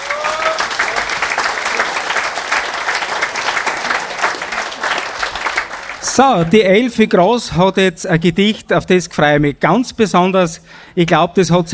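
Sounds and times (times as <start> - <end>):
audience applause: 0.0 - 6.5
speech: 6.2 - 11.7.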